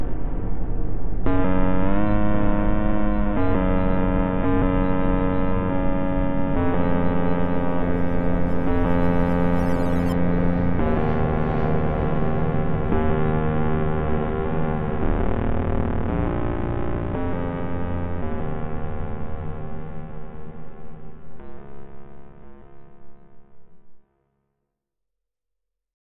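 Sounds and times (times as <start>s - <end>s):
ambience: 0.0s - 18.7s.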